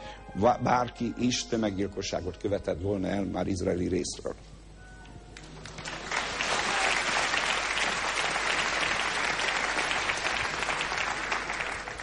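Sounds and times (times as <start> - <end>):
speech: 0.4 - 4.5
artificial canned applause: 5.4 - 12.0.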